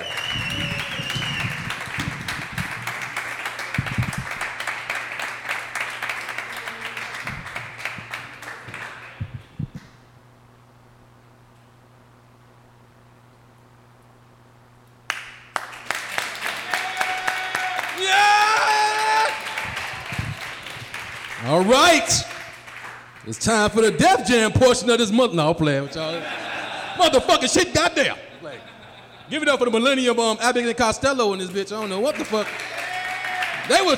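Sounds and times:
audience applause for headliner: 0.0 - 9.6, 15.1 - 23.2, 31.5 - 33.9
speech: 23.3 - 26.4, 27.0 - 28.7, 29.3 - 32.6, 33.7 - 33.9
laughter: 25.7 - 29.9.

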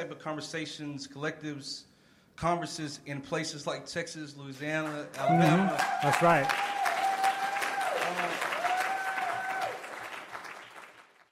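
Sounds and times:
speech: 0.0 - 6.8
crowd applause: 5.1 - 11.3.

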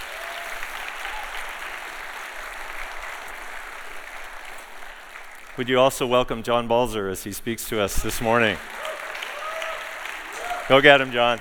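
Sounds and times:
audience applause during a church service: 0.0 - 6.2, 8.0 - 11.3
speech: 5.6 - 8.8, 10.7 - 11.3.

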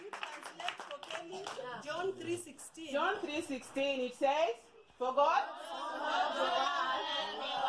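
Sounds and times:
audience clapping: 0.0 - 2.3
speech: 1.3 - 7.5.

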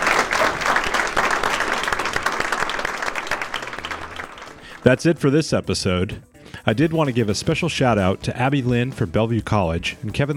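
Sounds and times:
audience round of applause: 0.0 - 4.8
speech: 4.8 - 10.3.

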